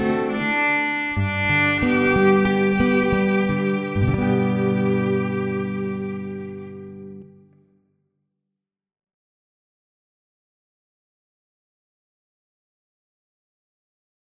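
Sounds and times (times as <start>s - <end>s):
acoustic guitar in an acoustic duo: 0.0s - 7.6s
violin in an acoustic duo: 0.0s - 7.6s.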